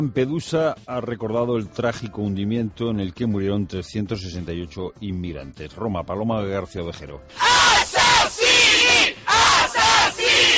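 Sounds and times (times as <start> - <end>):
speech: 0.0 - 8.4
crowd shouting protest chant: 7.4 - 10.5.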